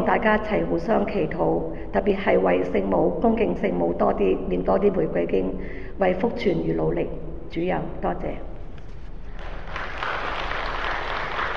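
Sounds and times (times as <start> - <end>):
speech: 0.0 - 8.5
audience clapping: 9.2 - 11.5.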